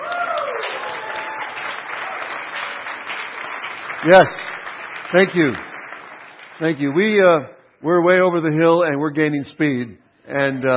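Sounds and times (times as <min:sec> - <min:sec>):
audience clapping: 0:00.0 - 0:07.4
speech: 0:04.0 - 0:04.4, 0:05.1 - 0:05.7, 0:06.6 - 0:10.7.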